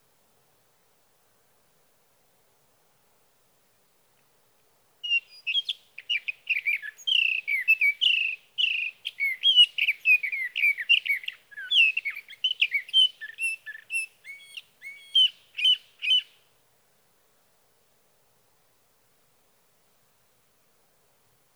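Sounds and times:
sage thrasher song: 5.0 - 16.5.

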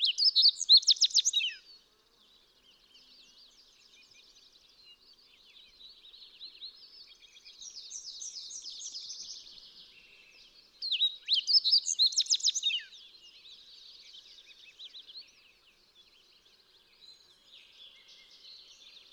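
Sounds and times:
fox sparrow whistled song: 0.0 - 1.8, 2.6 - 19.1.

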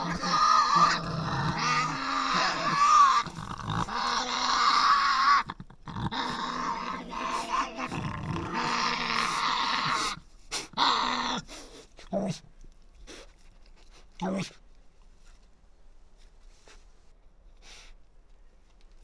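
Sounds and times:
Tasmanian devils screeching in an enclosure at Cradle Mountain in Tasmania: 0.0 - 11.8.

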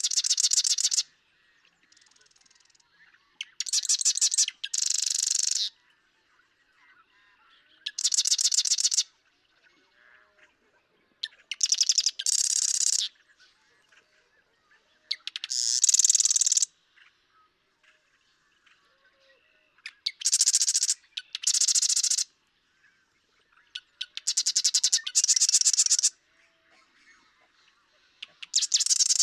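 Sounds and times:
Marsh Wren song: 0.0 - 29.2.

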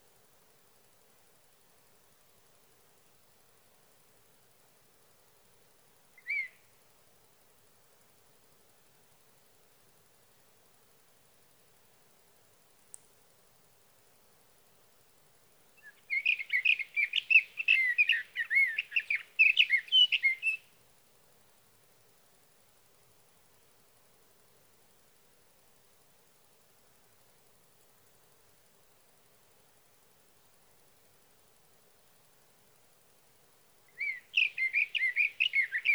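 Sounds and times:
Sage thrasher singing at night: 15.8 - 20.6, 34.0 - 35.9.

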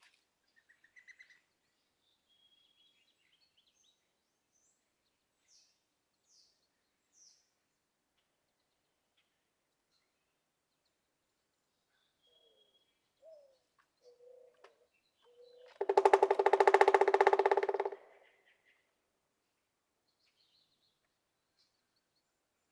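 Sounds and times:
Pileated woodpecker rapid series of sharp knocks: 15.7 - 18.1.

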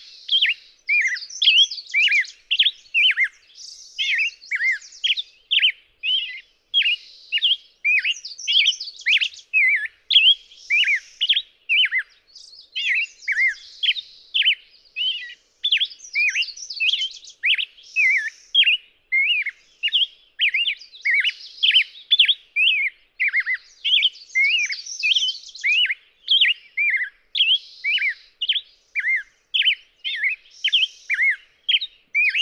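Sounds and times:
Black-headed Grosbeak dawn singing in Ola Idaho: 0.0 - 32.3.

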